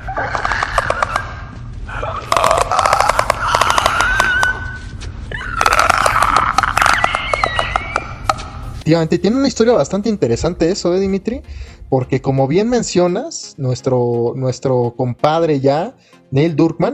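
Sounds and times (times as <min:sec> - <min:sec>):
infected clicker creature warbling throaty rasps: 0:00.0 - 0:08.3
infected clicker creature clicking noises: 0:02.1 - 0:04.7, 0:05.5 - 0:08.4
speech: 0:08.9 - 0:16.9.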